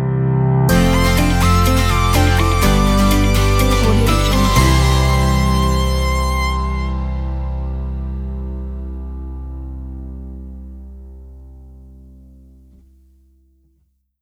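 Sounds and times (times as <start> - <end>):
corporate pop logo jingle: 0.7 - 8.3.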